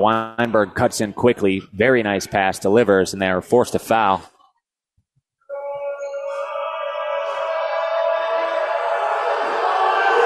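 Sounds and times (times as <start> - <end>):
speech: 0.0 - 4.3
basketball crowd roaring with yelling and whooping: 6.0 - 10.2.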